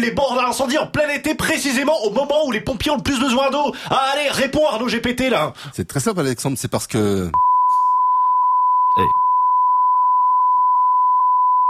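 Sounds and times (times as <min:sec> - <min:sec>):
speech: 0:00.0 - 0:07.5, 0:09.0 - 0:09.2
high-pitched censorship bleep over speech: 0:07.4 - 0:11.6.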